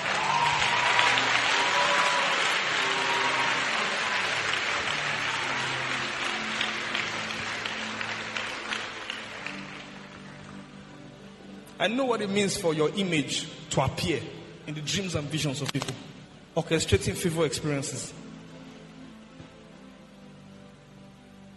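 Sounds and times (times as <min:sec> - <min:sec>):
sustained applause from a large group: 0:00.0 - 0:10.8
speech: 0:11.8 - 0:18.2.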